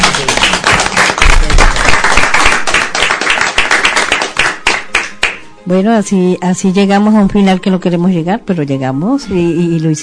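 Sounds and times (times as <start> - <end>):
applause: 0.0 - 5.5
speech: 5.7 - 10.0.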